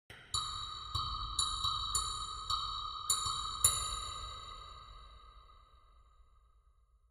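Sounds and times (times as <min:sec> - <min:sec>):
ambient synth grain click: 0:00.1 - 0:05.0.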